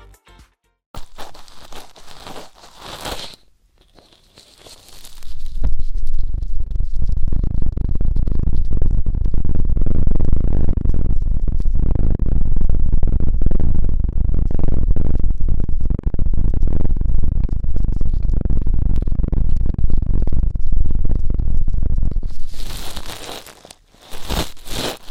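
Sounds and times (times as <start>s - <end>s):
ear-cleaning scratches: 1.0s - 12.4s, 17.8s - 25.0s
rumbling rub: 1.0s - 25.0s.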